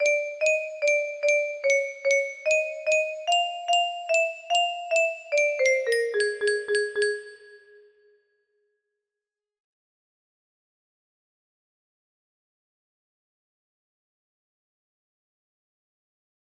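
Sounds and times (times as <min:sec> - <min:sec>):
music box: 0:00.0 - 0:08.1.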